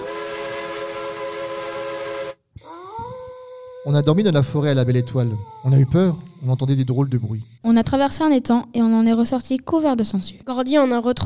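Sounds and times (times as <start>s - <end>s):
train whistle: 0.0s - 2.4s
speech: 3.8s - 11.2s.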